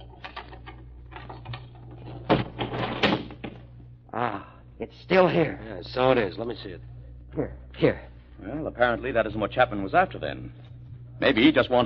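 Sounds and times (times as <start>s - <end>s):
low steady hum: 0.0s - 11.8s
desk being opened: 0.2s - 3.6s
speech: 4.2s - 11.8s.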